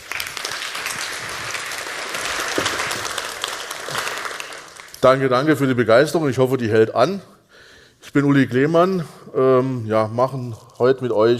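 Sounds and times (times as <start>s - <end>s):
audience applause: 0.0s - 5.1s
speech: 5.0s - 7.4s, 8.1s - 11.3s.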